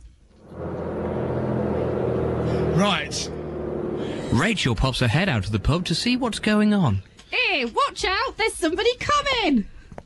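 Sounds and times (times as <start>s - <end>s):
bus passing on the street outside a pub door: 0.2s - 7.7s
speech: 2.8s - 3.4s, 4.3s - 9.7s.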